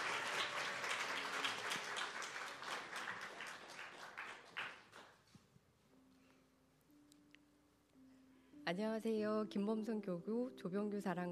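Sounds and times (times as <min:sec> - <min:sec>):
audience applause: 0:00.0 - 0:05.2
speech: 0:08.7 - 0:11.3.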